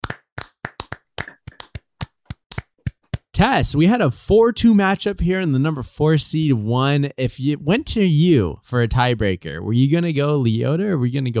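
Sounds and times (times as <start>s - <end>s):
group clapping: 0.0s - 3.3s
speech: 3.4s - 11.3s.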